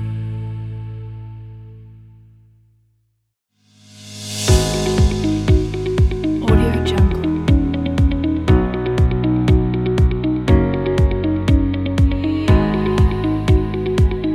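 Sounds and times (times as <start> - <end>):
motivational inspiring music: 3.9 - 14.3.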